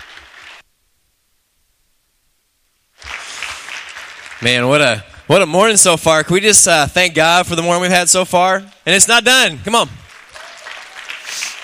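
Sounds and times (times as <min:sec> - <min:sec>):
audience applause: 0:00.0 - 0:00.6, 0:03.0 - 0:05.3, 0:10.0 - 0:11.6
speech: 0:04.4 - 0:10.0.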